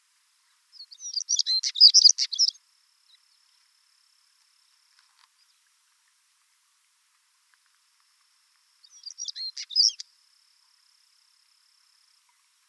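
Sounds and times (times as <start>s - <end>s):
chernogolovyy chekan stonechat calling: 0.7s - 2.6s, 8.8s - 10.1s.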